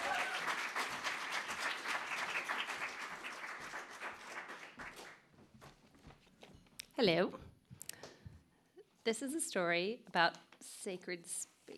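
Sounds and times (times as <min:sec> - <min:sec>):
audience applause: 0:00.0 - 0:05.2
speech: 0:07.0 - 0:07.4, 0:09.0 - 0:11.7.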